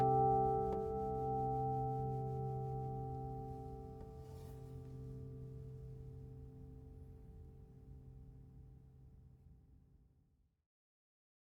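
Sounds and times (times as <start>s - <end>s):
flattop steel-string guitar of Brazilian rosewood and Italian spruce: 0.0s - 4.8s.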